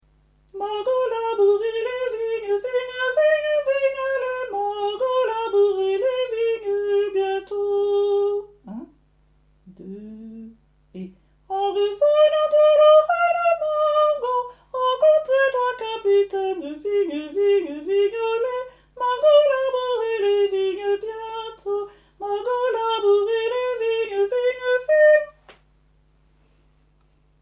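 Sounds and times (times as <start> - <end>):
sopranos singing a folk song: 0.6 - 8.4, 11.5 - 25.4.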